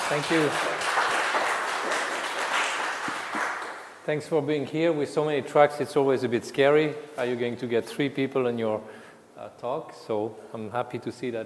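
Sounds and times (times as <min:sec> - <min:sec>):
audience applause at a software conference session: 0:00.0 - 0:04.0
speech: 0:00.1 - 0:01.0, 0:04.0 - 0:11.4.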